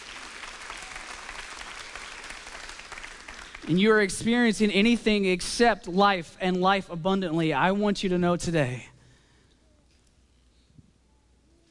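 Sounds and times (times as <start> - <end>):
church congregation clapping during a sermon: 0.0 - 4.1
speech: 3.6 - 8.9.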